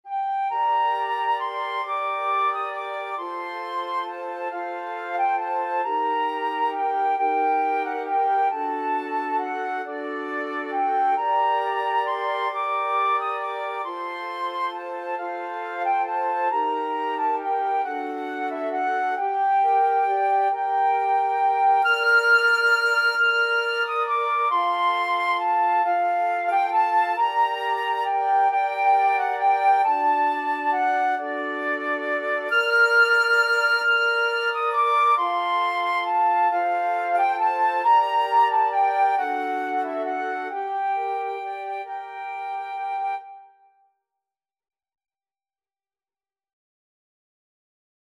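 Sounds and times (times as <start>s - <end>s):
flute quartet playing a folk tune: 0.1s - 43.7s.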